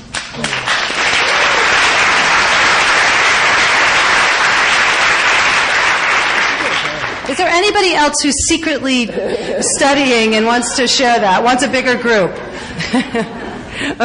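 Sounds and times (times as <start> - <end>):
audience applause: 0.1 - 7.4
speech: 7.8 - 14.0
laughter: 8.9 - 10.5, 12.4 - 14.0.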